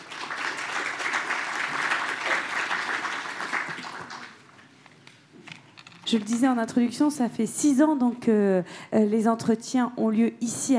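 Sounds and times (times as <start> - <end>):
audience applause: 0.0 - 4.5
speech: 6.1 - 10.7.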